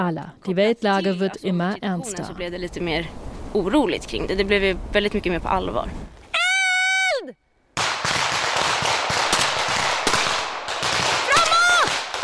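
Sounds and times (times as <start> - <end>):
speech: 0.0 - 6.2
person shouting: 6.3 - 7.4, 11.2 - 12.0
rifle fire with blank cartridges: 7.8 - 12.2.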